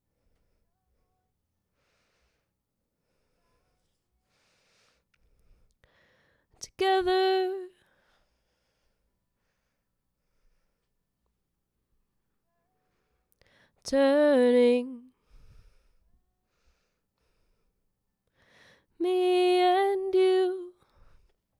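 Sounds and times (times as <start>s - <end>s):
vocal harmony: 6.6s - 7.8s, 13.8s - 15.1s, 19.0s - 20.8s.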